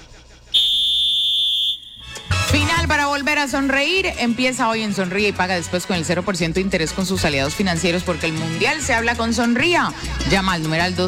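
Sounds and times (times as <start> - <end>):
whistle blast: 0.5 - 2.4
speech: 3.4 - 11.0.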